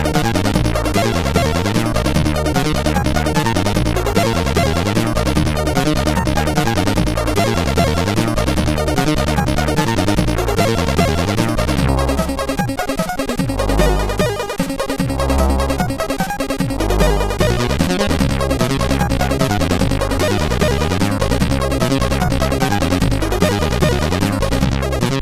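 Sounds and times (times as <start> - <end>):
banjo tune on a CSG8580R5 SID sound chip: 0.0 - 25.1.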